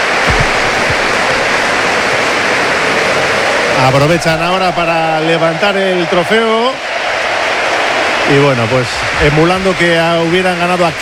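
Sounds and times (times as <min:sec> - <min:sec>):
stadium crowd ovation: 0:00.0 - 0:11.0
low thumps: 0:00.1 - 0:05.0
speech: 0:03.8 - 0:06.9, 0:08.3 - 0:11.0.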